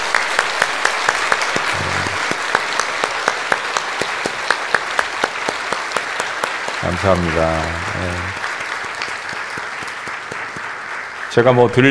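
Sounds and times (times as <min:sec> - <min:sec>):
audience clapping: 0:00.0 - 0:11.8
speech: 0:06.9 - 0:08.4, 0:11.4 - 0:11.8.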